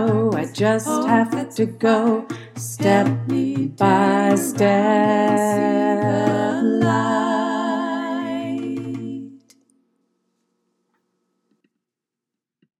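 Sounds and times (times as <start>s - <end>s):
tenor singing: 0.0s - 9.5s.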